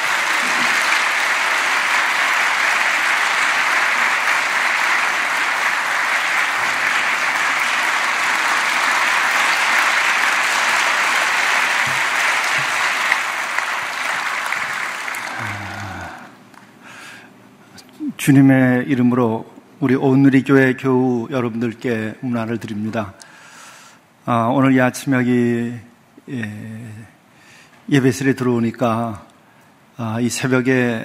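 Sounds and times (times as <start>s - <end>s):
big welcoming applause: 0.0s - 16.3s
speech: 18.3s - 23.2s, 24.2s - 27.1s, 27.9s - 29.3s, 30.0s - 31.0s.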